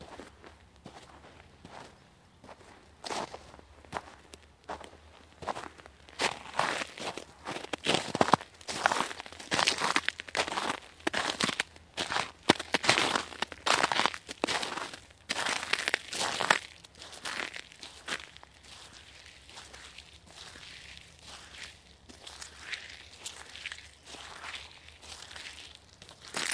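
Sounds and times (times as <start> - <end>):
footsteps in the snow in woods near Hebborn in Germany: 0.0 - 26.5.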